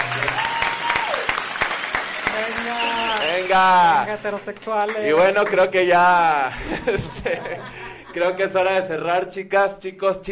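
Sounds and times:
crowd applause: 0:00.0 - 0:05.8
speech: 0:03.5 - 0:10.3
laughter: 0:06.5 - 0:08.5.

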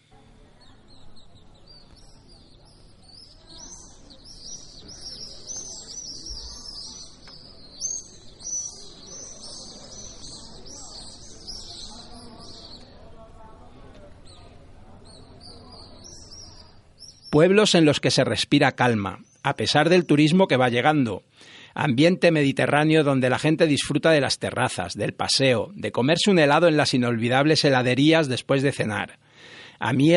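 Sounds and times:
swifts calling at sunset in Otranto: 0:00.0 - 0:13.1, 0:14.0 - 0:20.7
speech: 0:17.4 - 0:30.1.

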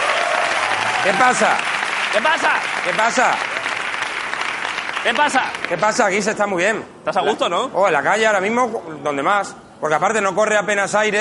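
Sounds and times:
street audience applause for a guest: 0:00.0 - 0:06.0
speech: 0:01.0 - 0:03.5, 0:05.0 - 0:11.1.

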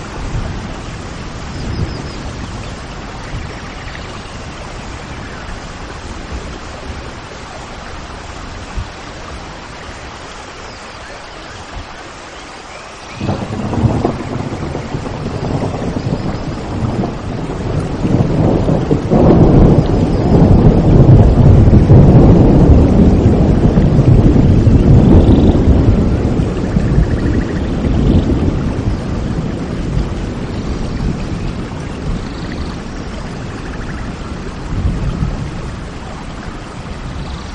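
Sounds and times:
steady rain in Parque Nacional de Ordesa y Monte Perdido: 0:00.0 - 0:37.5
deep rolling rumble: 0:13.2 - 0:37.5.

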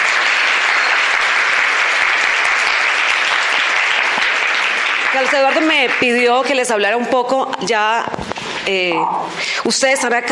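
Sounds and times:
audience applause: 0:00.0 - 0:07.0
speech: 0:05.2 - 0:10.3.

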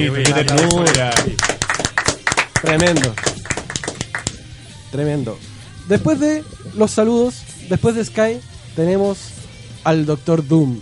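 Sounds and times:
speech: 0:00.0 - 0:01.6, 0:02.6 - 0:03.3, 0:04.9 - 0:10.8
audience applause: 0:00.2 - 0:04.3.

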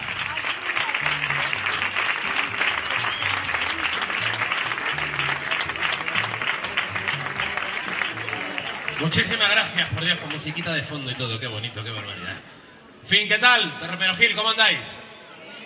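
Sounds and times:
audience applause: 0:00.0 - 0:12.2
speech: 0:09.0 - 0:12.5, 0:13.1 - 0:15.0.

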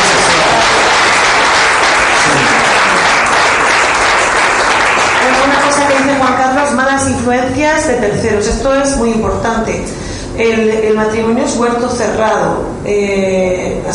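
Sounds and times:
audience applauding: 0:00.0 - 0:06.4
speech: 0:07.2 - 0:13.9.

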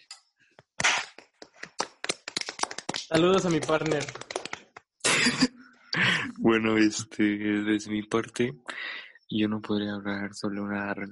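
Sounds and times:
small group clapping: 0:00.8 - 0:05.0
speech: 0:03.1 - 0:04.2, 0:05.2 - 0:05.5, 0:06.4 - 0:11.1.

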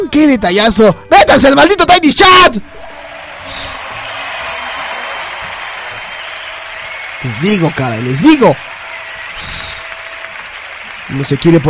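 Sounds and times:
speech: 0:00.1 - 0:02.8, 0:03.5 - 0:03.7, 0:07.2 - 0:08.7, 0:09.4 - 0:09.6, 0:11.1 - 0:11.6
audience applause: 0:02.8 - 0:11.6.

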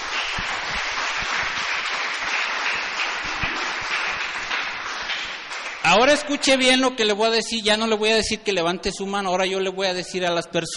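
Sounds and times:
audience applause: 0:00.0 - 0:06.1
speech: 0:00.4 - 0:00.9, 0:05.9 - 0:10.7.

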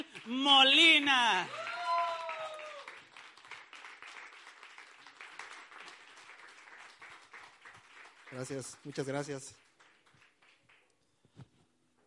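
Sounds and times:
speech: 0:00.3 - 0:01.7, 0:08.3 - 0:09.6
audience applause: 0:01.4 - 0:10.9.

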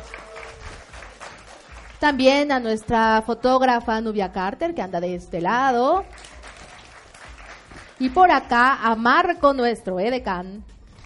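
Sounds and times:
audience applause: 0:00.0 - 0:02.0, 0:06.1 - 0:08.1
speech: 0:02.0 - 0:06.3, 0:08.0 - 0:10.7.

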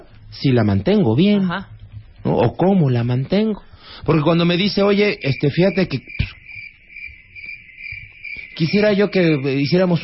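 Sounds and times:
faint low rumbling: 0:00.0 - 0:06.0
speech: 0:00.3 - 0:06.3, 0:08.6 - 0:10.0
cricket chirping: 0:00.9 - 0:10.0.

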